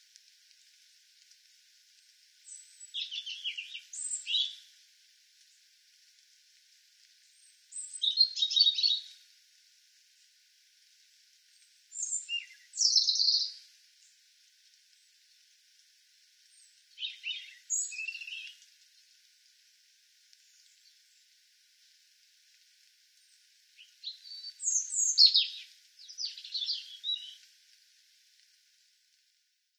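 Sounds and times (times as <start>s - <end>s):
faint hiss: 0.0s - 29.7s
European robin song: 2.4s - 4.6s, 11.9s - 13.6s, 16.5s - 18.6s, 23.8s - 27.4s.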